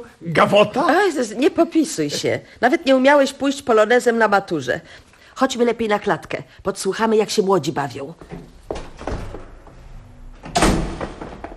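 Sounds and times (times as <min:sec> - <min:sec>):
speech: 0:00.0 - 0:08.8
door handled with soft clunks and rattles: 0:10.4 - 0:11.5.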